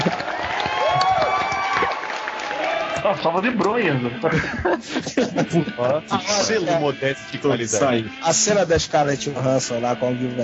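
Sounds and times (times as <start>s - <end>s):
crowd clapping and cheering: 0.0s - 3.6s
laughter: 3.0s - 6.9s
speech: 3.0s - 10.4s.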